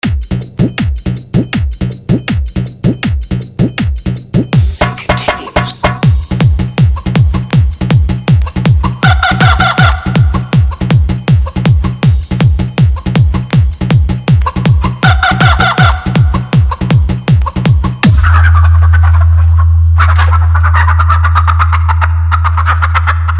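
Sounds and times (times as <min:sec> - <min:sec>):
hard bass DJ remix: 0:00.0 - 0:23.3.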